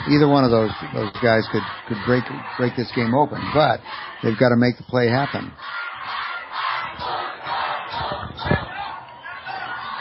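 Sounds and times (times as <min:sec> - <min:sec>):
football crowd roaring and cheering: 0:00.0 - 0:09.9
speech: 0:00.1 - 0:05.8.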